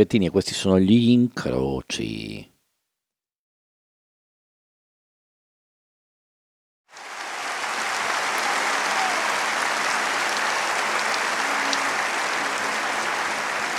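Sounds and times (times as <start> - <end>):
speech: 0.0 - 2.5
crowd applause: 7.0 - 13.7.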